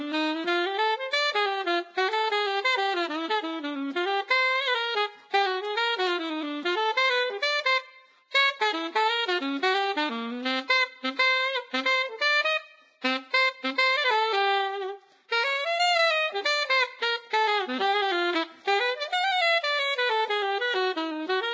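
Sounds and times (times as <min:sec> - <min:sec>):
saxophone: 0:00.0 - 0:21.5.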